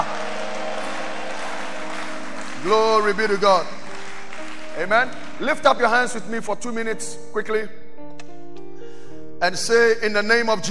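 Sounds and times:
audience shouting hallelujah: 0:00.0 - 0:02.4
audience clapping: 0:00.0 - 0:06.3
speech: 0:02.6 - 0:03.8, 0:04.8 - 0:07.8, 0:09.4 - 0:10.6.

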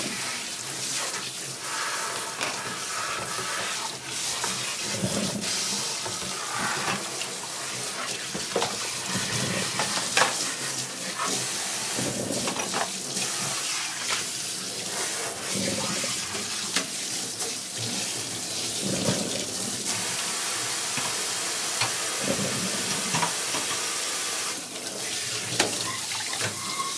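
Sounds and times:
water running from a tap: 0:00.0 - 0:26.9
utensils and dishes knocking during lunchbox food preparation: 0:08.4 - 0:10.6, 0:11.2 - 0:13.0, 0:21.8 - 0:23.8, 0:25.4 - 0:26.9.

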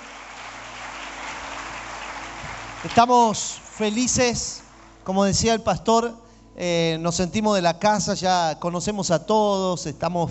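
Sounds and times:
audience applause: 0:00.0 - 0:05.0
speech: 0:02.8 - 0:10.2.

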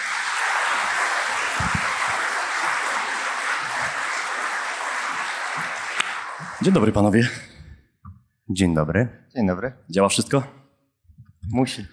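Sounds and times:
audience applause: 0:00.0 - 0:07.3
speech: 0:06.6 - 0:07.5, 0:08.5 - 0:10.6, 0:11.5 - 0:11.9.

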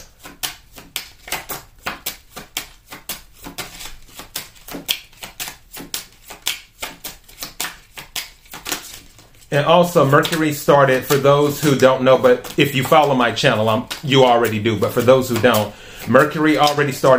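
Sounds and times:
tarot cards being shuffled: 0:00.0 - 0:17.1
speech: 0:09.5 - 0:17.1.

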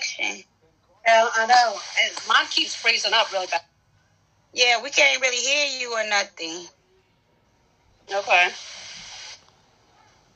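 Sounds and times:
speech: 0:01.1 - 0:03.7, 0:04.5 - 0:06.8, 0:08.1 - 0:08.8
water running: 0:01.4 - 0:03.6.

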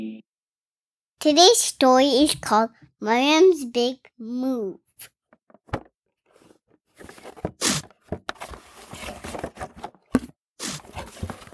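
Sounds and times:
speech: 0:01.2 - 0:05.1
packing tape pulled onto cardboard boxes: 0:07.6 - 0:07.9, 0:10.6 - 0:10.9.

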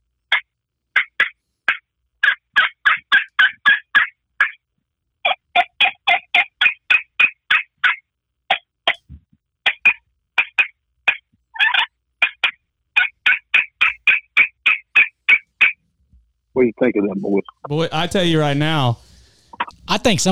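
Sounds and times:
glass friction turkey call yelping over phone: 0:00.3 - 0:15.8, 0:19.5 - 0:19.9
speech: 0:16.6 - 0:19.0, 0:19.9 - 0:20.3.

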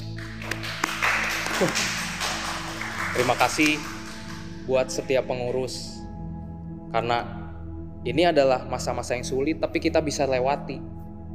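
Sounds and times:
audience clapping: 0:00.0 - 0:04.6
speech: 0:01.6 - 0:01.9, 0:03.2 - 0:03.9, 0:04.7 - 0:05.9, 0:06.9 - 0:07.4, 0:08.0 - 0:11.0.

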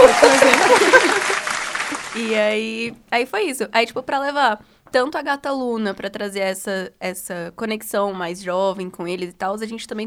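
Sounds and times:
laughter: 0:00.0 - 0:02.2
applause: 0:00.0 - 0:02.5
speech: 0:02.3 - 0:10.0.

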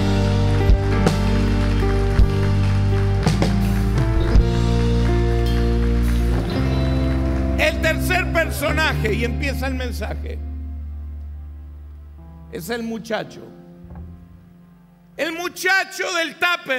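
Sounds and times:
audience applause: 0:00.0 - 0:09.0
sustained musical chords: 0:00.0 - 0:15.2
speech: 0:08.4 - 0:10.5, 0:12.5 - 0:13.6, 0:15.2 - 0:16.7.

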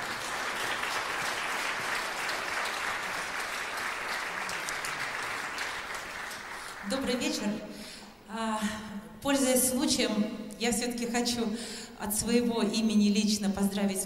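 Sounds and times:
audience applause: 0:00.0 - 0:06.9
speech: 0:06.9 - 0:14.0.

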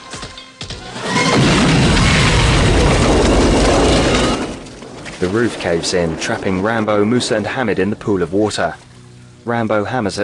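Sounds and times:
explosion of a detonating charge in a Rambo action film: 0:01.0 - 0:08.8
speech: 0:05.2 - 0:10.2.

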